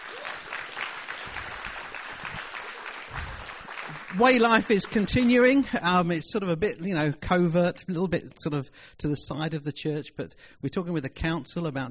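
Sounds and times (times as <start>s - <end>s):
audience clapping: 0.0s - 5.8s
speech: 4.1s - 11.8s.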